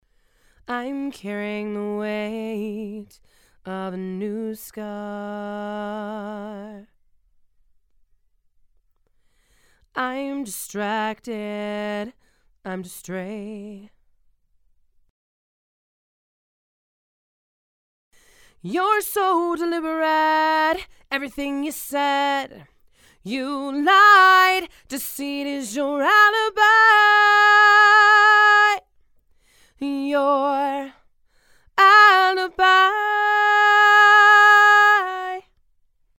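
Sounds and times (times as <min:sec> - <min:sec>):
female vocals: 0:00.6 - 0:07.0, 0:09.9 - 0:14.0, 0:18.6 - 0:28.9, 0:29.7 - 0:35.6.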